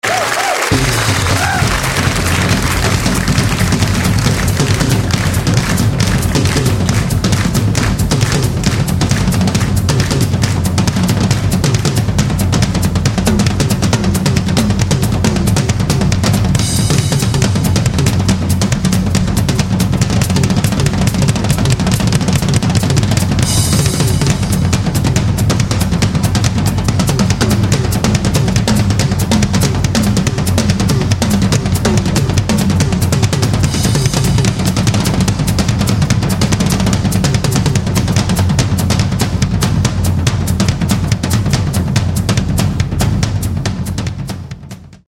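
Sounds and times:
jazz hop rhythm: 0.6s - 44.0s.

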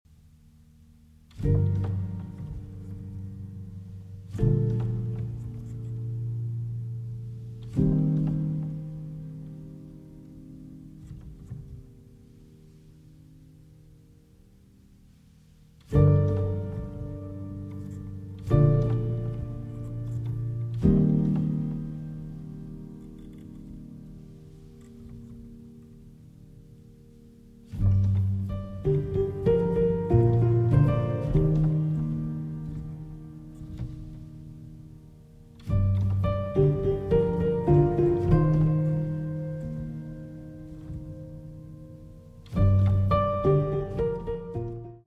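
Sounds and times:
grand piano: 0.1s - 45.0s.

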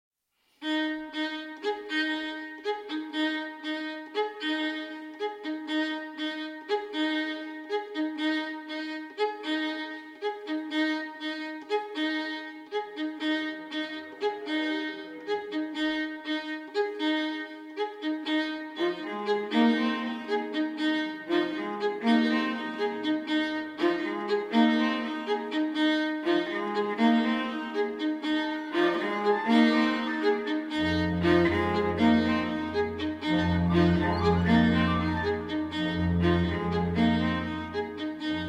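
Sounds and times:
string quartet: 0.6s - 38.4s.

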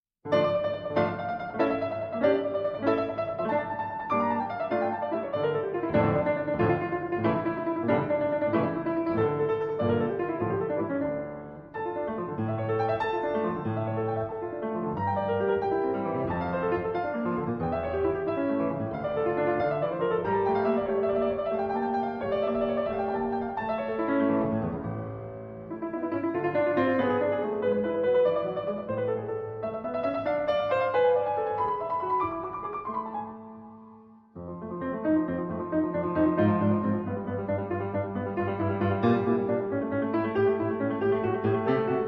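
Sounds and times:
keyboard sonata in D minor: 0.2s - 42.0s.

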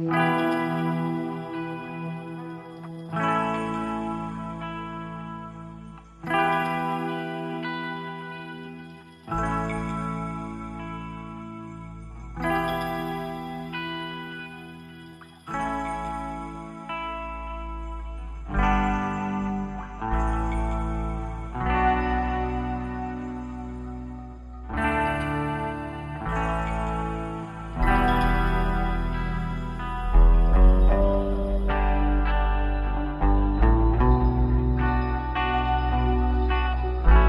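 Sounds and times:
party guitar music: 0.1s - 37.2s.

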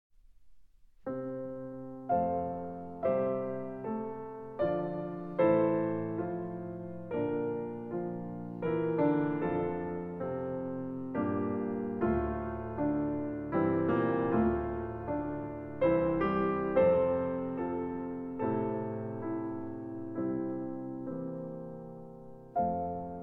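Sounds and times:
piano piece: 0.2s - 23.2s.

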